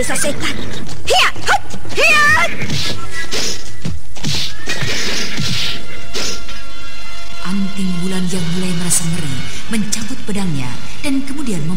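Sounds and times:
speech: 0.0s - 6.5s, 7.4s - 11.7s
agitated horse stamping its hooves: 0.7s - 2.5s.

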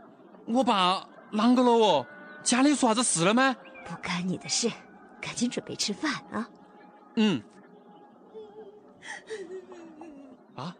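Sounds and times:
speech: 0.5s - 6.6s, 7.2s - 7.6s, 9.0s - 9.6s, 10.6s - 10.7s
girl crying: 8.3s - 10.4s.

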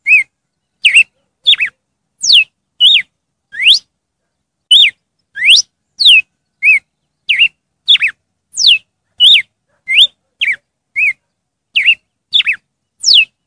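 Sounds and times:
red-cowled cardinal song: 0.0s - 3.9s, 4.7s - 11.2s, 11.8s - 13.4s.

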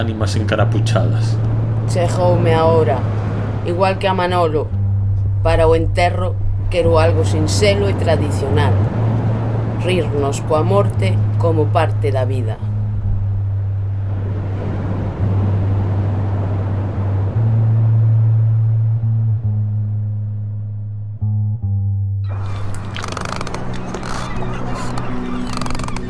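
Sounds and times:
rushing water at sea in front of a lighthouse: 0.0s - 4.8s, 5.8s - 12.8s, 13.4s - 18.2s, 22.3s - 26.0s
speech: 0.0s - 4.8s, 5.4s - 9.0s, 9.8s - 12.7s
deep droning tone of a boat at sea: 0.0s - 26.0s
harsh crackling surge of bright noise: 22.3s - 26.0s.

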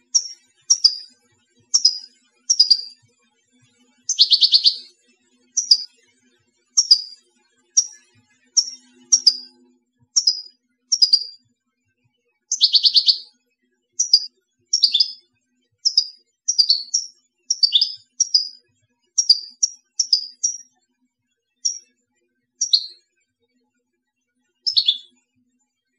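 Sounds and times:
European goldfinch call notes: 0.0s - 1.1s, 1.7s - 3.0s, 4.1s - 4.9s, 5.6s - 5.9s, 6.8s - 7.2s, 7.8s - 8.0s, 8.6s - 9.5s, 10.2s - 11.4s, 12.5s - 13.2s, 14.0s - 15.2s, 15.9s - 18.6s, 19.2s - 20.6s, 22.6s - 22.9s, 24.7s - 25.1s.

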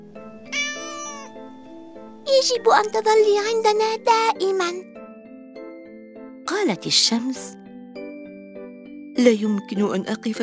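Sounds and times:
small cat meowing: 0.4s - 1.4s
speech: 2.3s - 5.0s, 6.6s - 7.6s, 9.2s - 10.4s.

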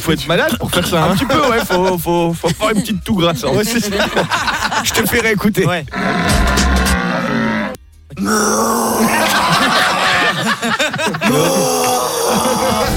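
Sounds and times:
speech: 0.0s - 6.4s, 8.2s - 9.3s, 10.6s - 12.9s
laughter: 0.7s - 5.4s, 8.8s - 12.9s
person imitating red deer rutting bellow: 5.9s - 9.3s, 11.3s - 12.9s.

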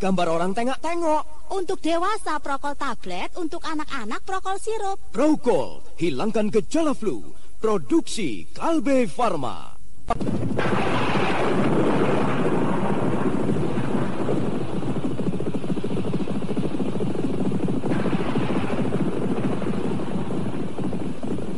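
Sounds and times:
speech: 0.0s - 11.3s
rain: 10.5s - 21.5s.

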